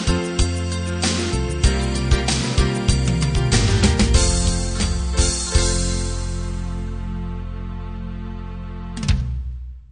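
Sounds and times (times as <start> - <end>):
rock ballad: 0.0 - 7.4.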